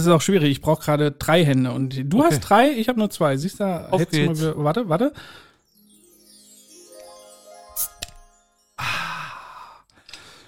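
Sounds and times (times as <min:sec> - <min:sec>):
speech: 0:00.0 - 0:05.4
glass nostalgia soda bottle opening: 0:07.7 - 0:08.3.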